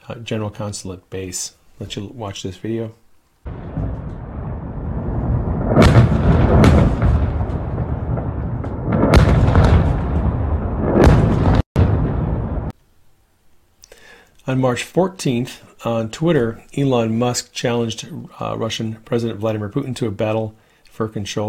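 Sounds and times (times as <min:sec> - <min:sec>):
speech: 0:00.1 - 0:03.6, 0:14.5 - 0:21.4
continuous low rumble: 0:03.5 - 0:12.7
missile explosions at the U.S. consulate in Erbil, Iraq: 0:03.5 - 0:12.7.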